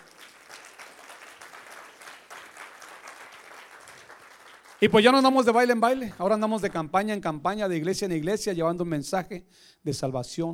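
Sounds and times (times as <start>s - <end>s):
audience applause: 0.0s - 5.4s
speech: 4.8s - 10.5s.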